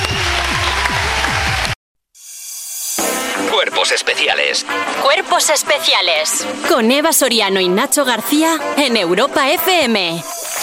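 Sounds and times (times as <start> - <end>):
audience applause: 0.0 - 1.8
speech: 3.6 - 10.4.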